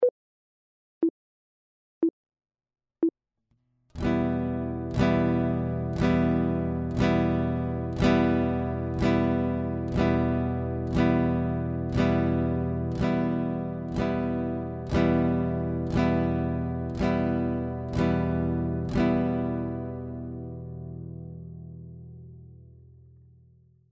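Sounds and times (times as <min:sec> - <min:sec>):
guitar chord: 0:04.0 - 0:23.0.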